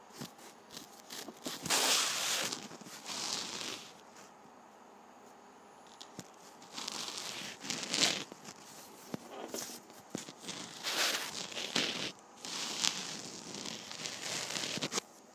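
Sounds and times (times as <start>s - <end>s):
penny ridge rubbing: 0.4s - 4.0s, 6.5s - 15.0s.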